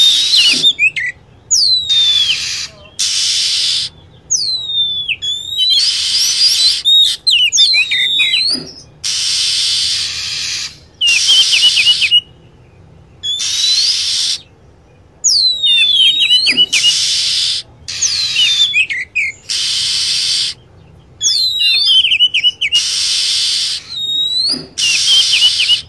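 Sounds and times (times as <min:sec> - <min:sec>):
lovebird chattering: 0:00.0 - 0:12.3, 0:13.2 - 0:14.5, 0:15.2 - 0:25.8
rasping hiss-like bursts: 0:02.4 - 0:03.9, 0:08.6 - 0:12.0, 0:16.7 - 0:18.1, 0:19.4 - 0:20.6, 0:22.8 - 0:25.8.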